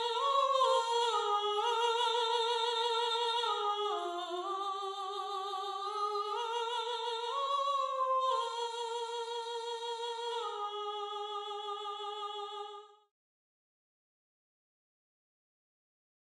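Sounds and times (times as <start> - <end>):
soprano singing: 0.0 - 12.9.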